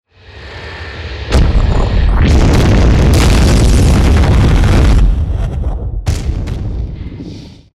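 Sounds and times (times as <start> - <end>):
fire element spell effect: 1.3 - 5.9.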